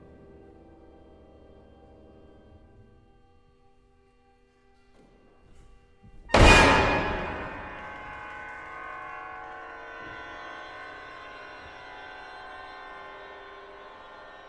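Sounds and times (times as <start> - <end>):
hammer blow: 6.2 - 14.1.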